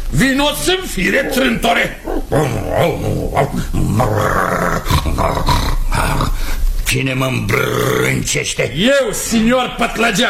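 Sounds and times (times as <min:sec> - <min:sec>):
speech: 0:00.1 - 0:05.6, 0:06.9 - 0:10.2
dog snoring: 0:01.1 - 0:06.4.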